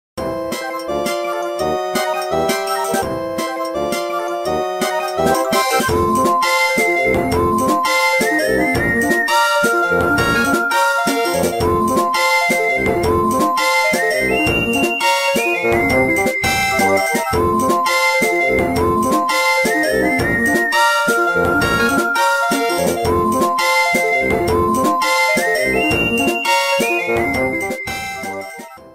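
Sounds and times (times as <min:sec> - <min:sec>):
music: 0:00.2 - 0:28.9.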